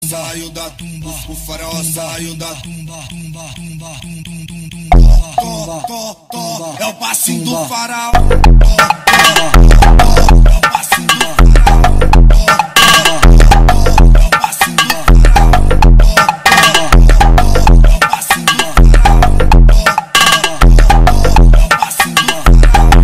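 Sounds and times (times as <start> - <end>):
funk music: 8.2 - 23.0.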